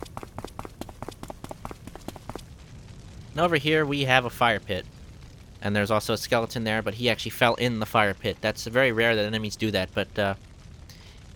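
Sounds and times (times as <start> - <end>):
footsteps of a character walking and climbing a ladder in a video game: 0.0 - 2.6
speech: 3.4 - 5.0, 5.6 - 10.5.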